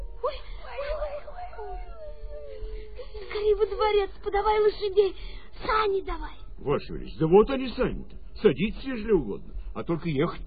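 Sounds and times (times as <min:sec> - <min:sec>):
wolves howling: 0:00.0 - 0:02.8
speech: 0:03.8 - 0:10.4.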